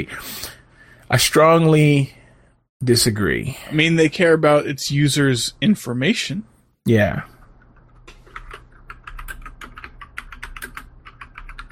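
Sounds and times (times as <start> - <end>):
speech: 0.0 - 2.2, 2.8 - 7.3
computer keyboard typing while writing a note: 7.5 - 11.7.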